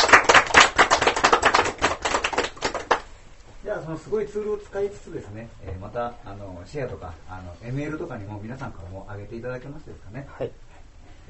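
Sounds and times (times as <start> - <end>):
applause: 0.0 - 3.1
speech: 3.7 - 10.6.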